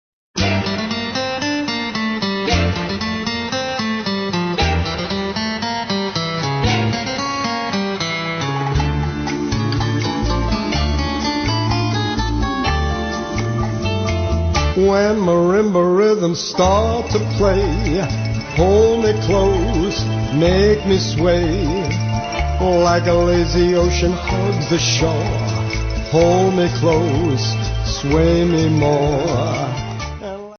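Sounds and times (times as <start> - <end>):
swing music: 0.4 - 30.5.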